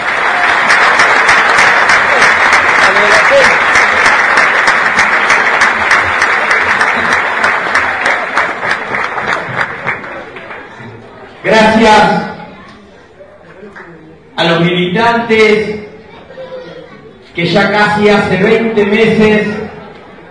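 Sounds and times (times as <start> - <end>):
crowd applauding: 0.0 - 11.8
speech: 11.5 - 12.3, 14.5 - 15.8, 17.4 - 19.8.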